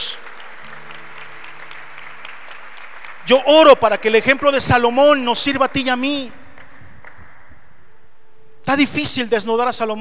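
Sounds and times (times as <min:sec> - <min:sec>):
audience applauding: 0:00.0 - 0:05.1
speech: 0:03.3 - 0:06.4, 0:08.7 - 0:09.9.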